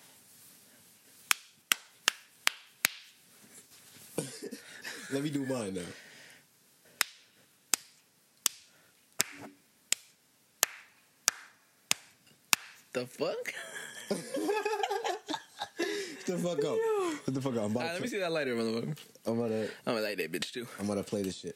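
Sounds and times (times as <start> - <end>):
hand clapping: 1.3 - 3.2, 7.0 - 12.8
laughter: 4.2 - 5.7, 13.5 - 17.3
speech: 5.1 - 6.0, 13.0 - 15.1, 16.3 - 21.5.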